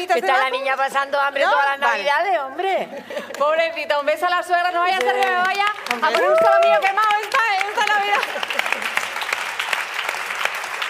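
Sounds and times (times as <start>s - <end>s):
speech: 0.0s - 8.9s
group of people applauding: 4.8s - 10.8s.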